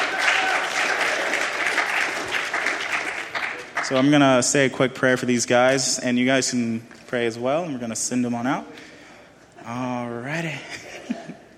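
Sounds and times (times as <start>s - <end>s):
audience clapping: 0.0s - 4.4s
speech: 3.9s - 8.9s, 9.6s - 11.2s.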